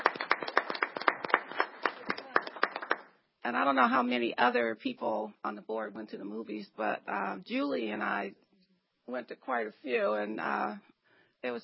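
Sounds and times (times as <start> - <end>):
audience applause: 0.0 - 3.1
speech: 3.5 - 8.4, 9.1 - 11.6.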